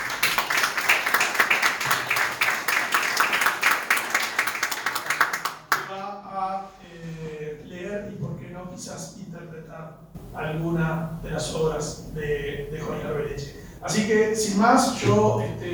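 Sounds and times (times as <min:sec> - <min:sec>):
audience applause: 0:00.0 - 0:05.9
speech: 0:09.8 - 0:15.7.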